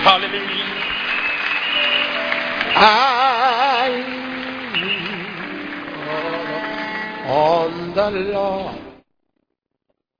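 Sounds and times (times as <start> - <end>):
audience clapping hands: 0.0 - 7.5
speech: 0.1 - 0.8, 2.7 - 4.2, 7.3 - 8.8.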